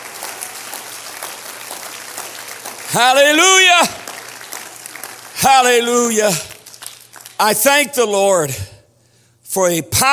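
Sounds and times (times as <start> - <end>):
audience clapping: 0.0 - 8.0
speech: 2.9 - 4.0, 5.4 - 6.5, 7.4 - 8.7, 9.5 - 10.1.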